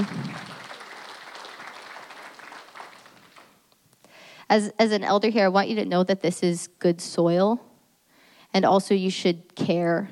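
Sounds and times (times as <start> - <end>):
audience applause: 0.0 - 3.6
speech: 4.5 - 7.7, 8.5 - 10.1.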